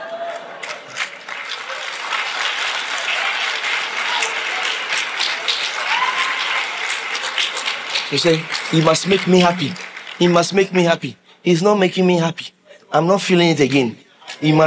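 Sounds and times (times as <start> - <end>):
clapping: 0.1 - 10.6
speech: 8.1 - 14.6.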